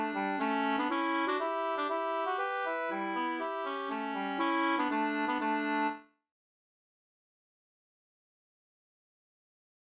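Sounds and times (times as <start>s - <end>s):
folk dance music: 0.0s - 5.9s.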